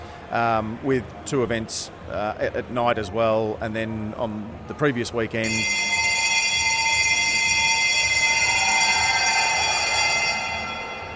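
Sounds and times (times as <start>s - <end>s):
speech: 0.3s - 6.0s
bell ringing: 5.4s - 11.1s.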